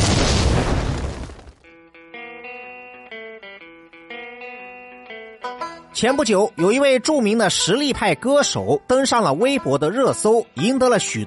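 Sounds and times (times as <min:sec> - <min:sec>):
explosion sound effect: 0:00.0 - 0:01.6
speech: 0:06.0 - 0:11.2.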